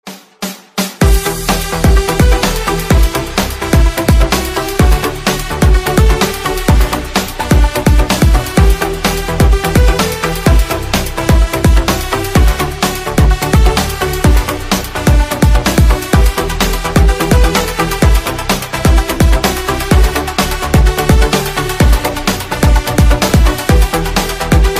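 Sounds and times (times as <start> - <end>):
instrumental music: 0.0 - 24.7.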